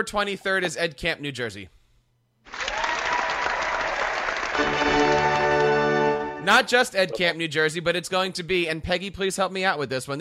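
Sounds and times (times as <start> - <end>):
speech: 0.0 - 1.8, 6.4 - 10.1
applause sound effect: 2.5 - 6.4.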